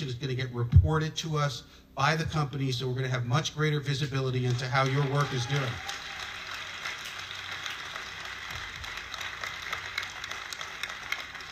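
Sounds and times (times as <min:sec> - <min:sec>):
speech: 0:00.0 - 0:06.0
crowd applauding: 0:04.4 - 0:11.5.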